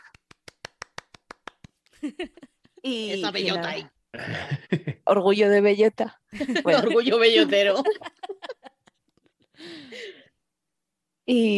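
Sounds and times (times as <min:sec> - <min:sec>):
hand claps: 0:00.0 - 0:02.0
speech: 0:02.0 - 0:08.1, 0:11.3 - 0:11.5
laughter: 0:06.4 - 0:09.1.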